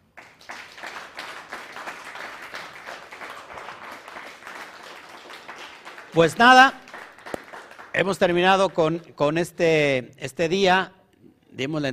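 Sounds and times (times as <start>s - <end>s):
audience applause: 0.0s - 9.0s
speech: 6.1s - 6.8s, 8.0s - 11.0s, 11.6s - 11.9s.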